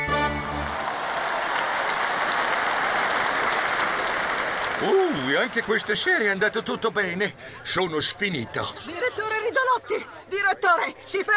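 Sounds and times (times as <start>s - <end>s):
circus audience applauding enthusiastically: 0.0s - 7.0s
speech: 4.8s - 9.2s, 9.8s - 11.3s.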